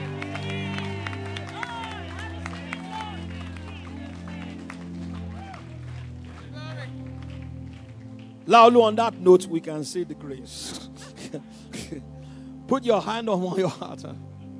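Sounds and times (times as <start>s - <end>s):
excited shouts and cheering voices: 0.0s - 5.7s
audience clapping as an offering: 0.0s - 9.3s
speech: 8.5s - 12.0s, 12.7s - 14.3s.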